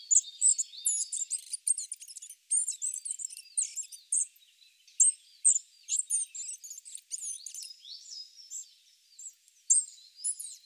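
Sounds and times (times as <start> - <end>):
Spotted flycatcher ticking calls: 0.1 - 4.4, 5.0 - 7.8.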